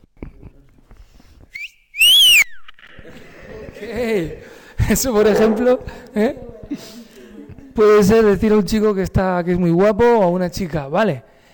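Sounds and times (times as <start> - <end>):
catcall wolf whistle: 1.5 - 2.7
laughter: 2.8 - 8.4
speech: 3.8 - 7.0, 7.8 - 11.3.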